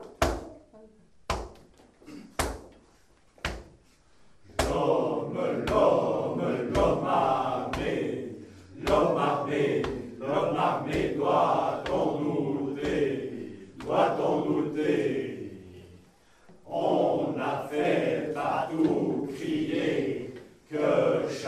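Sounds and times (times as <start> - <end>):
choir singing: 4.5 - 21.4.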